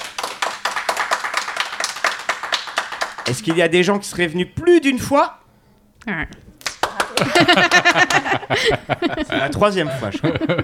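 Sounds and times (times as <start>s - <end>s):
audience applause: 0.0s - 3.6s, 6.7s - 8.4s
speech: 3.3s - 5.4s, 6.0s - 6.5s, 7.2s - 10.6s
laughter: 6.9s - 10.6s.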